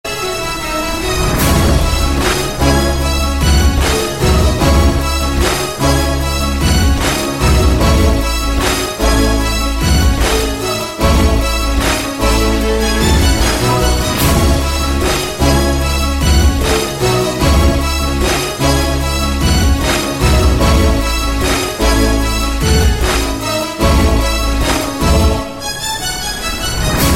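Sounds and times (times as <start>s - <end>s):
violins: 0.0s - 27.1s.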